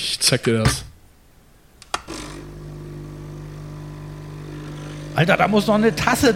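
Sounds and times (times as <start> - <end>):
speech: 0.1 - 0.9, 5.2 - 6.3
capsule coffee machine clicks: 1.8 - 2.1
capsule coffee machine buzzing pump hum: 2.0 - 6.3.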